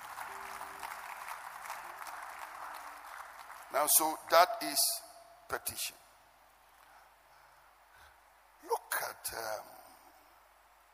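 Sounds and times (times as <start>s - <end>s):
audience applause: 0.0s - 4.1s
speech: 3.7s - 6.0s, 9.2s - 9.8s.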